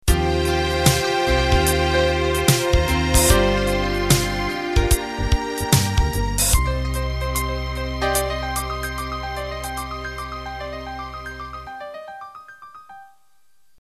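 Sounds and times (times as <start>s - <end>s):
swing rock music ending: 0.1s - 10.0s.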